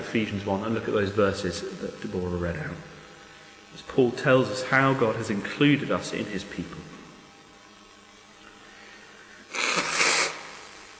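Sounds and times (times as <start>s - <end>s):
speech: 0.1s - 3.0s, 3.8s - 7.0s
person blowing nose: 9.4s - 10.6s.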